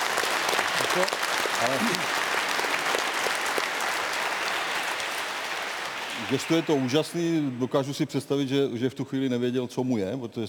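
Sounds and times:
applause: 0.0 - 7.6
speech: 1.0 - 2.2, 6.2 - 10.4.

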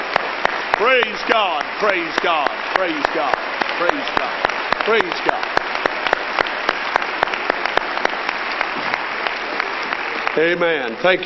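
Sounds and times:
audience clapping hands: 0.0 - 11.2
speech: 0.8 - 5.6, 10.4 - 11.2.

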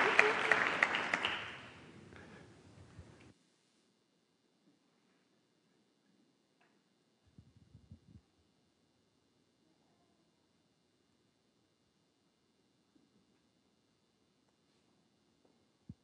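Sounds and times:
audience cheering: 0.0 - 1.8.

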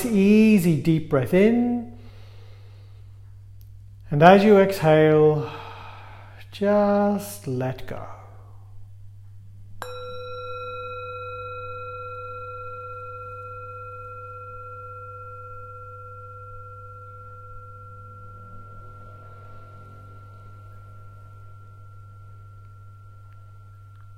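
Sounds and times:
speech: 0.0 - 1.9, 4.1 - 5.6, 6.5 - 8.2
steady low hum: 0.0 - 24.1
meditation bell ringing: 9.8 - 24.1.

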